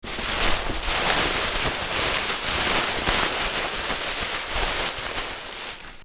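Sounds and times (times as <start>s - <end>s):
plastic foil crinkling: 0.0s - 6.0s.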